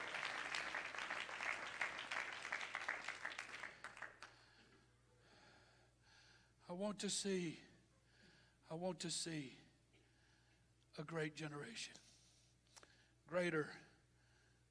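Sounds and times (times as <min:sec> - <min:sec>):
audience clapping: 0:00.0 - 0:04.4
speech: 0:06.7 - 0:07.7, 0:08.7 - 0:09.6, 0:11.0 - 0:12.0, 0:13.3 - 0:13.9.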